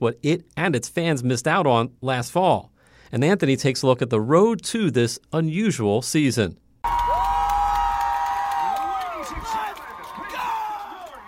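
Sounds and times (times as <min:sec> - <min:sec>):
speech: 0:00.0 - 0:06.6
football stadium crowd cheering: 0:06.8 - 0:11.2.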